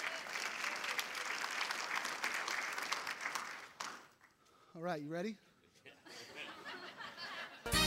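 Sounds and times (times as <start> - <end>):
crowd applauding: 0.0 - 4.3
speech: 4.8 - 5.5
laughter: 5.8 - 7.7.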